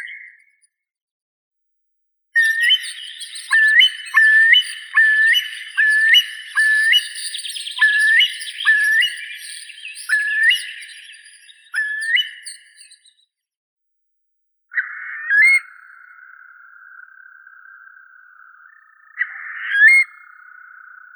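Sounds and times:
Eurasian curlew Numenius arquata calling: 2.4 - 12.8, 14.7 - 21.1.

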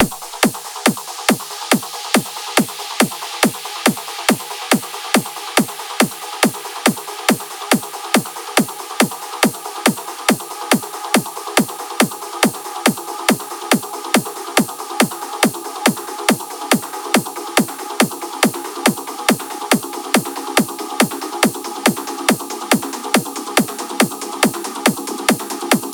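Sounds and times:
noise remix: 0.0 - 25.9.

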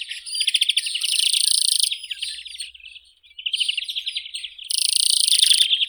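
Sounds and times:
European greenfinch Chloris chloris singing: 0.4 - 1.9, 4.7 - 5.7.

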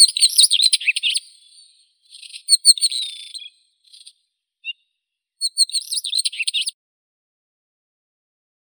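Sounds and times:
northern wheatear Oenanthe oenanthe: 0.0 - 4.8, 5.4 - 6.8.

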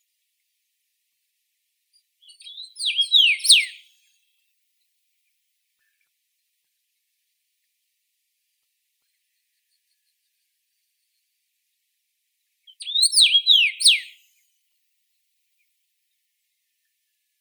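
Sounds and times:
common rosefinch Carpodacus erythrinus: 2.2 - 4.1, 12.7 - 14.4.

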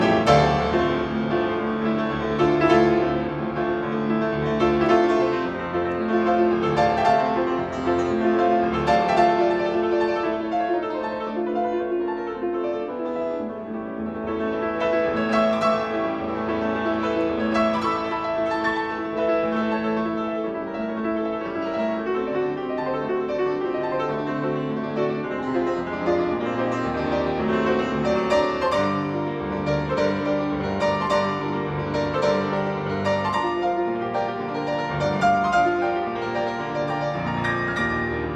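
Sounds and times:
piano sonata in D minor: 0.0 - 38.3.

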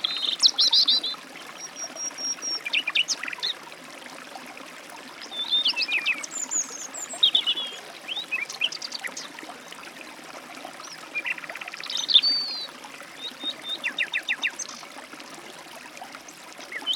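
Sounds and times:
robin singing: 0.0 - 3.6, 5.2 - 9.3, 10.8 - 14.8, 16.3 - 16.9
forest stream: 0.0 - 16.9.

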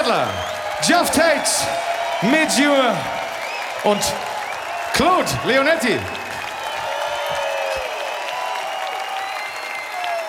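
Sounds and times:
audience applause: 0.0 - 10.2
speech: 0.1 - 3.2, 3.8 - 4.3, 4.9 - 6.2.

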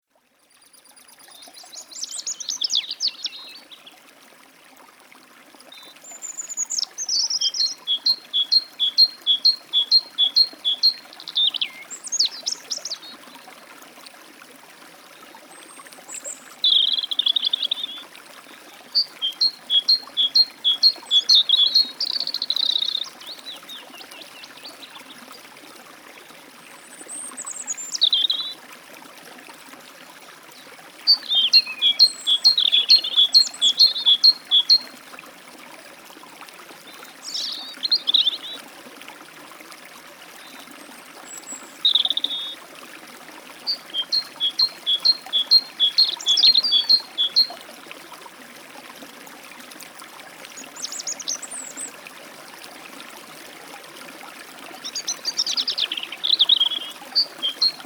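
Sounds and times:
forest stream flowing: 0.2 - 57.8
European robin at a forest stream: 1.6 - 3.8, 5.8 - 13.2, 16.1 - 25.1, 27.3 - 28.6, 31.0 - 34.9, 37.2 - 38.6, 41.3 - 42.6, 43.6 - 47.6, 50.6 - 51.9, 54.8 - 57.8
great tit at a forest stream: 6.5 - 13.0, 19.0 - 23.7, 31.1 - 34.8, 43.7 - 47.5, 54.9 - 57.8.

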